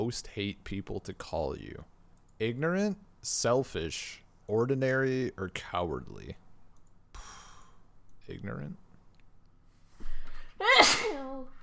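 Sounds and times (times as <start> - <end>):
speech: 0.1 - 6.4, 8.3 - 8.8
person sneezing: 10.6 - 11.4.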